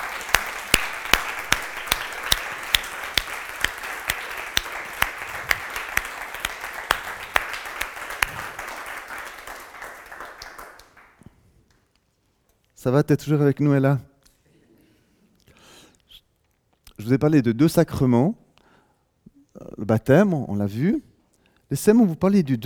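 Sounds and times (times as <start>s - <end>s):
crowd applauding: 0.0s - 11.2s
speech: 12.8s - 14.1s, 17.0s - 18.4s, 19.8s - 21.1s, 21.7s - 22.6s.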